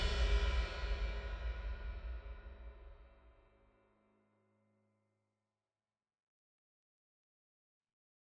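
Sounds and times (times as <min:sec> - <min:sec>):
percussion: 0:00.0 - 0:03.5.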